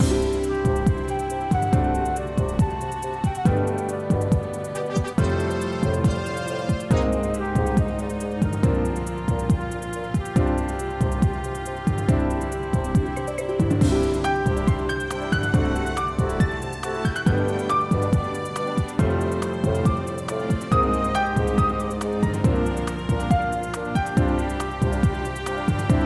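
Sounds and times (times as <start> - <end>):
background music: 0.0 - 26.0.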